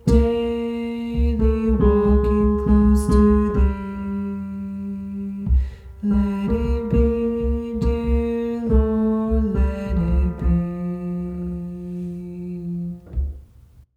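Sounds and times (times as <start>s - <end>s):
tenor instrument playing a hymn: 0.0s - 13.5s.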